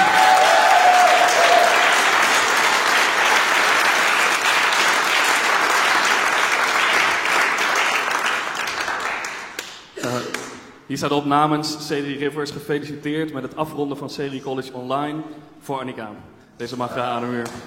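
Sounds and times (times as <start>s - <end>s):
crowd applauding: 0.0s - 10.5s
speech: 10.9s - 17.6s.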